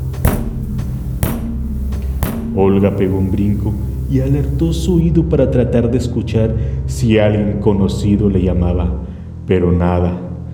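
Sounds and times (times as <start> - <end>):
knocking on a door: 0.0 - 4.9
speech: 2.6 - 10.3.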